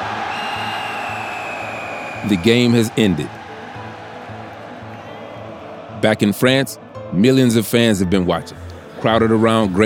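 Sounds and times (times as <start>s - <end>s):
crowd roar: 0.0s - 5.8s
referee's whistle blown to end game: 0.2s - 2.7s
speech: 2.2s - 3.4s, 6.0s - 9.8s.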